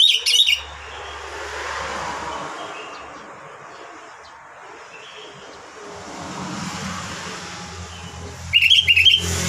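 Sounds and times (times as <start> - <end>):
sooty-headed bulbul whistled song: 0.0 - 0.7, 8.5 - 9.3.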